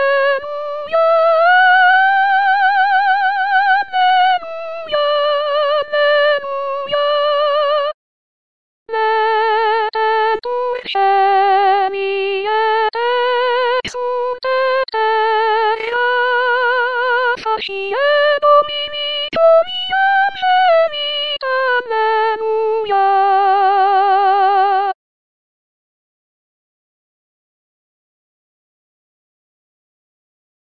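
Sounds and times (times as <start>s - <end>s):
artificial soprano voice: 0.0s - 8.0s, 8.9s - 25.0s.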